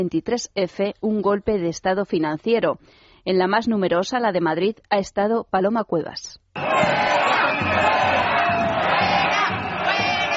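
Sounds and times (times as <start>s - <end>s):
speech: 0.0s - 7.0s
protest crowd chanting in the street: 6.6s - 10.3s.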